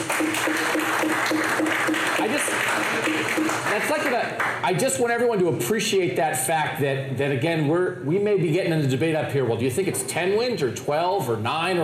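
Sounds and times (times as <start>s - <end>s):
audience clapping: 0.0s - 4.8s
speech: 4.0s - 11.8s.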